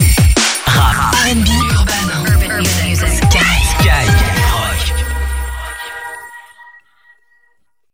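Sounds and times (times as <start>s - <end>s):
Christmas jingle: 0.7s - 6.8s.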